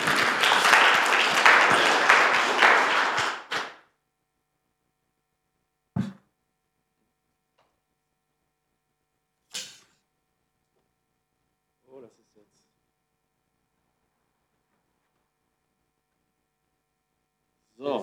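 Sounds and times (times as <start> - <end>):
audience applause: 0.0 - 3.9.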